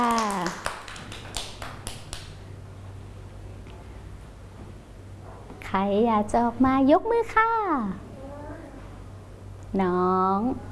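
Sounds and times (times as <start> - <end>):
children clapping hands: 0.0 - 2.4
speech: 5.7 - 8.1, 9.7 - 10.6.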